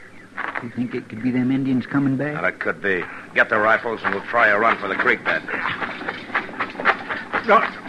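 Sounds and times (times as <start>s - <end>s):
speech: 0.6s - 6.1s, 7.4s - 7.8s
many horses galloping: 2.4s - 7.8s.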